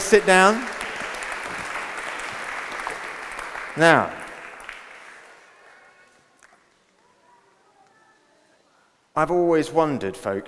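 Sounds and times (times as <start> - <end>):
round of applause: 0.0 - 6.2
speech: 0.1 - 0.8, 3.8 - 4.2, 9.2 - 10.4.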